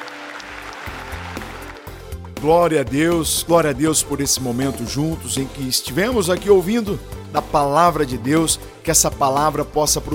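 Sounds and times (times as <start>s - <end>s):
audience applause: 0.0s - 1.9s
speech: 2.4s - 10.1s.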